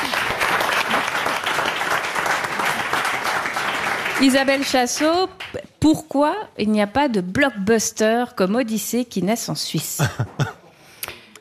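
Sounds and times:
audience applause: 0.0 - 5.6
speech: 4.2 - 10.5.

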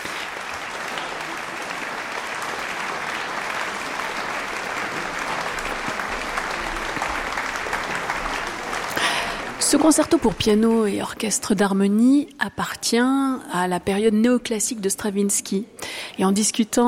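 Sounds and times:
concert audience applauding for encores: 0.0 - 11.0
speech: 9.7 - 16.8.

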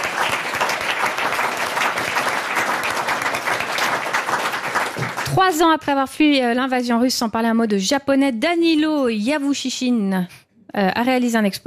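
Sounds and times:
crowd clapping: 0.0 - 5.8
speech: 5.4 - 11.6.

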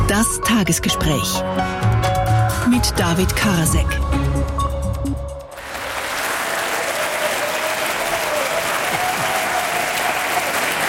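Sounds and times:
speech: 0.2 - 1.9, 2.7 - 4.5
large audience applause: 5.5 - 10.8.

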